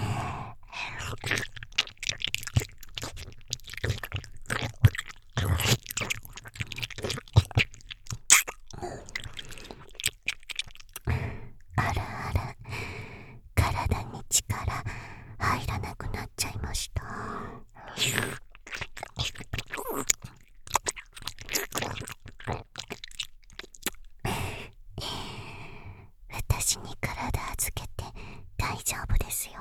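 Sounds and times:
slow ear licking: 0.0s - 13.1s, 17.0s - 25.4s
boosted whispering: 11.8s - 12.6s, 13.6s - 18.3s, 26.3s - 29.5s.

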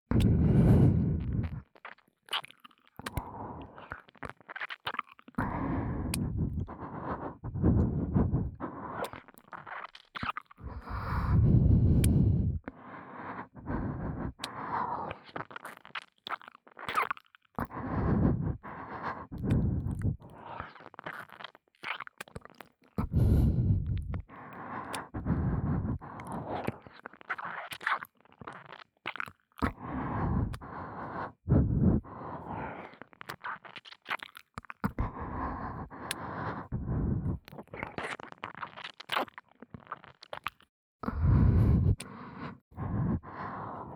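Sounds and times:
heavy breathing: 0.1s - 1.6s, 5.4s - 9.3s, 10.6s - 15.3s, 17.6s - 20.8s, 23.0s - 26.9s, 29.6s - 33.1s, 34.9s - 37.4s, 41.0s - 43.9s
ear licking: 3.9s - 12.8s, 13.5s - 42.2s.

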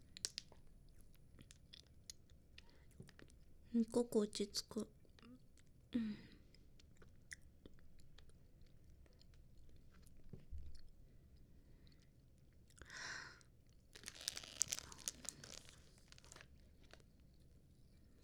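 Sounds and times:
chewing and biting while eating a meal: 0.0s - 3.6s, 6.5s - 13.0s, 13.7s - 18.1s
speech: 3.7s - 5.0s, 6.0s - 6.2s.

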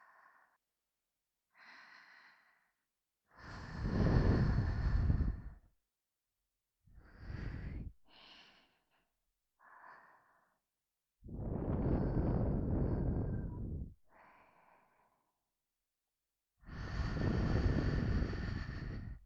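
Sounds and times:
person breathing in the left ear: 1.6s - 2.8s, 3.4s - 5.6s, 7.0s - 10.6s, 11.5s - 15.4s, 16.7s - 19.2s.

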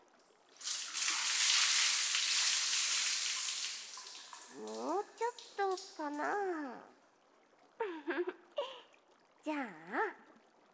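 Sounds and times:
water poured to rinse off foam: 0.4s - 6.4s
speech: 4.6s - 7.0s, 9.5s - 10.2s.

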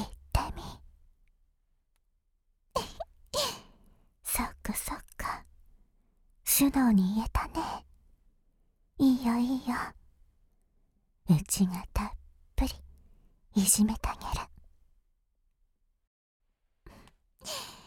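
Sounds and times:
ASMR whispering: 0.0s - 0.8s, 4.3s - 5.5s, 6.5s - 7.9s, 9.0s - 10.0s, 11.3s - 12.8s, 13.6s - 14.6s.

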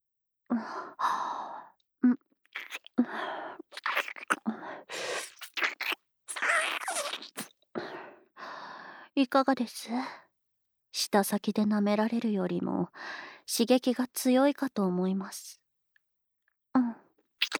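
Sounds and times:
speech: 0.5s - 1.4s, 9.2s - 10.2s, 11.0s - 15.6s
wet mouth sucking on a nipple: 2.6s - 7.5s.

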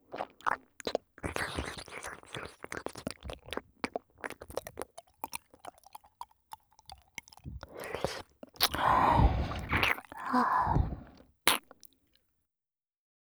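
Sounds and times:
ear licking in the left ear: 0.1s - 11.8s
breathy sighs in the left ear: 7.4s - 11.2s.

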